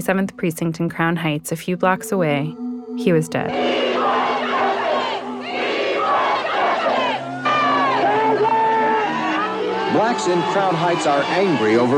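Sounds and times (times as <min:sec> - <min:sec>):
speech: 0:00.0 - 0:04.2, 0:09.9 - 0:11.9
crowd of protesters shouting at a march: 0:03.5 - 0:11.9.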